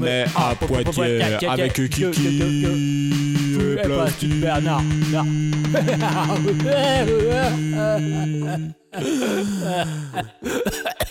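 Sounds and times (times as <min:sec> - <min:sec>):
speech: 0:00.0 - 0:11.0
radio jingle: 0:00.2 - 0:08.7
laughter: 0:03.9 - 0:11.0.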